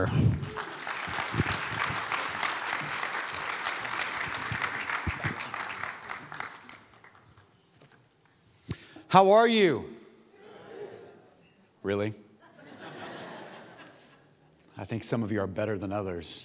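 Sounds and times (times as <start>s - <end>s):
speech: 0.0s - 0.2s, 9.1s - 9.9s, 11.8s - 12.2s, 14.8s - 16.4s
audience applause at a church service: 0.0s - 7.6s
laughter: 10.4s - 11.4s, 12.4s - 14.4s.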